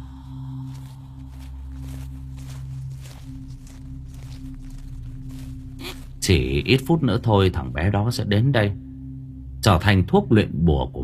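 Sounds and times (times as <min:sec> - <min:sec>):
footsteps crunching on dry leaves: 0:00.0 - 0:07.3
speech: 0:06.3 - 0:08.8, 0:09.6 - 0:11.0.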